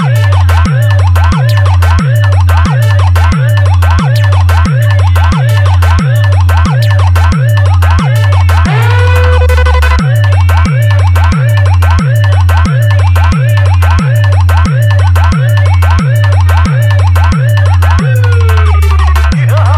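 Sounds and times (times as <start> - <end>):
humming bass: 0.0 - 19.7
ambulance horn: 8.7 - 10.0.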